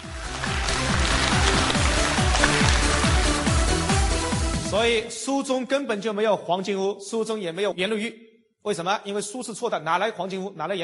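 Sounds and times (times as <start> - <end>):
audience applause: 0.0 - 3.4
low rhythmic music: 0.0 - 5.0
speech: 4.7 - 10.8.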